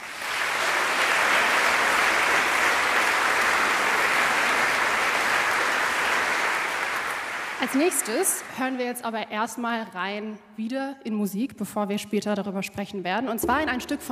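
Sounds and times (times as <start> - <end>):
audience applause: 0.0 - 8.7
speech: 7.6 - 14.1.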